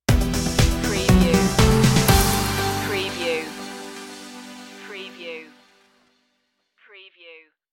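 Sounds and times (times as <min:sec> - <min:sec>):
elements stinger: 0:00.9 - 0:06.0.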